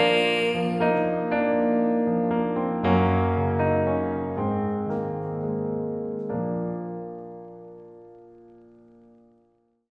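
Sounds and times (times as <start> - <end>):
acoustic music: 0.0 - 7.5.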